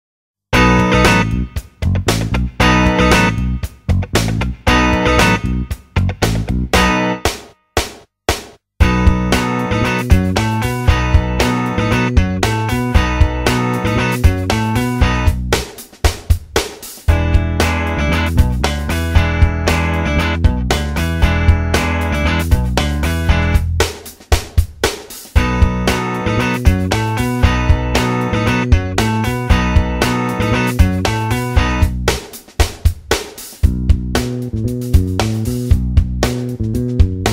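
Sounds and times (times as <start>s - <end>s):
musical backing: 0.6s - 37.3s.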